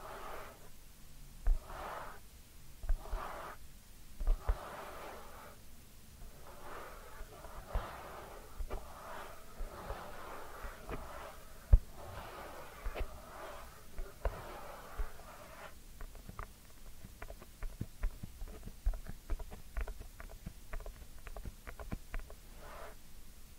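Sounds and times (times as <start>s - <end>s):
ear cleaning rubbing and scratching: 0.0s - 0.7s, 1.5s - 2.2s, 2.8s - 3.6s, 4.2s - 5.6s, 6.2s - 23.0s
taps: 16.0s - 22.4s.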